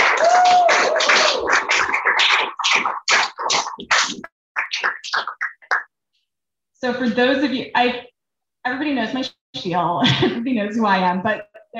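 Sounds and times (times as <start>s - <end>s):
crowd applause: 0.0s - 5.8s
speech: 6.8s - 11.7s.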